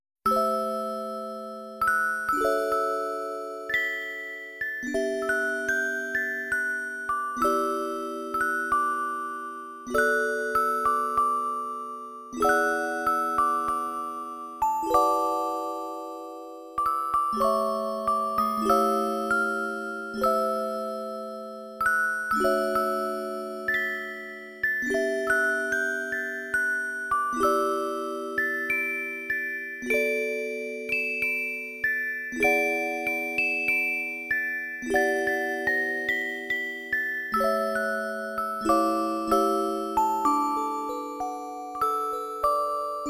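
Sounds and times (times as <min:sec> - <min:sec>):
music box: 0:00.3 - 0:43.0.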